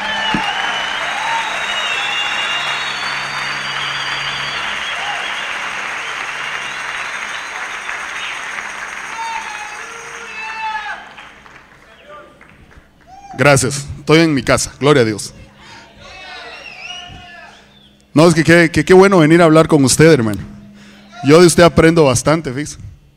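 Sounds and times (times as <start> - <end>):
audience applause: 0.0 - 13.2
speech: 13.4 - 15.4, 18.2 - 20.5, 21.2 - 22.9.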